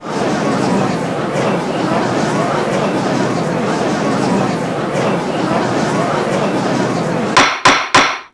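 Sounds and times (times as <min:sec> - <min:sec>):
laughter: 0:00.0 - 0:07.4
gallery gavel strikes: 0:07.4 - 0:08.3.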